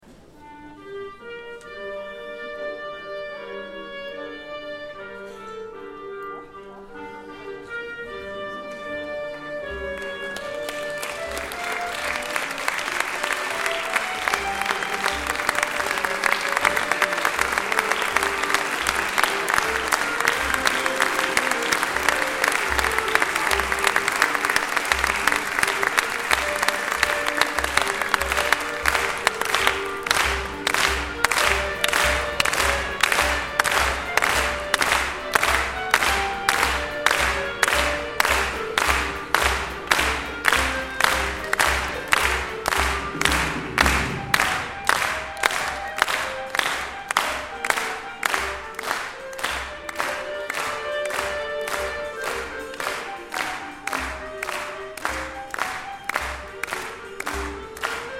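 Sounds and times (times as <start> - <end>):
clarinet ensemble: 0.1 - 58.1.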